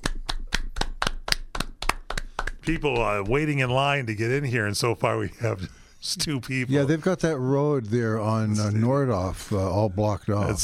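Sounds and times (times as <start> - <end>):
studio audience clapping slowly: 0.0 - 3.9
speech: 2.6 - 10.6.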